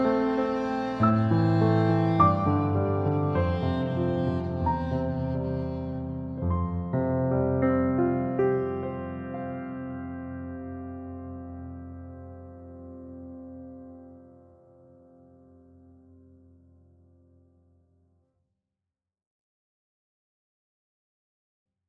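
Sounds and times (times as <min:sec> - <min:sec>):
romantic music: 0:00.0 - 0:16.1.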